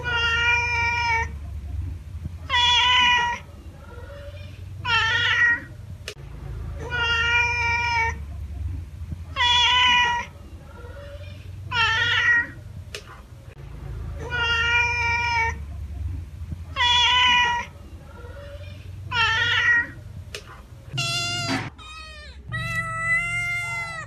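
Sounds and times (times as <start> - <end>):
domestic cat giving drawn-out meows: 0.0 - 1.4, 2.4 - 5.7, 6.8 - 8.2, 9.3 - 12.6, 14.2 - 15.6, 16.7 - 20.0, 20.9 - 24.0.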